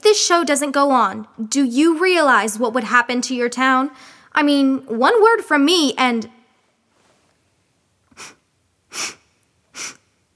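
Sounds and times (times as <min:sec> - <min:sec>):
speech: 0:00.2 - 0:06.4, 0:09.0 - 0:09.2, 0:09.8 - 0:10.0
person sniffing: 0:08.1 - 0:10.3.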